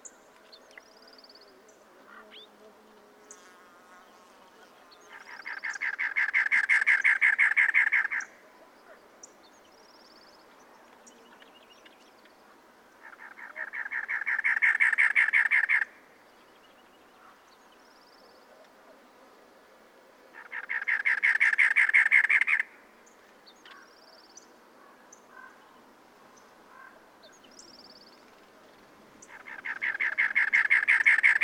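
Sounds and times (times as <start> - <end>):
cactus wren calling: 5.1 - 8.4, 13.0 - 16.0, 20.3 - 22.8, 29.2 - 31.4.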